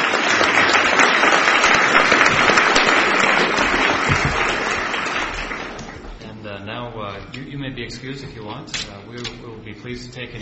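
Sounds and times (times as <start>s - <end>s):
audience applause for litigants after a court hearing: 0.0s - 6.2s
speech: 7.9s - 10.4s.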